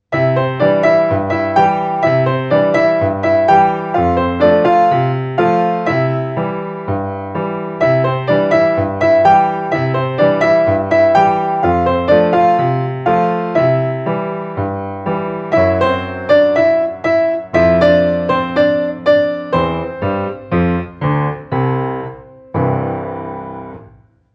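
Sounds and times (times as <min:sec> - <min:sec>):
ragtime music: 0:00.2 - 0:23.8.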